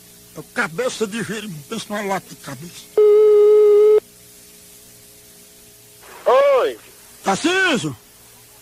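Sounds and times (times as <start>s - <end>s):
speech: 0.4s - 3.0s, 6.6s - 8.0s
telephone busy signal after a dropped call: 3.0s - 4.0s.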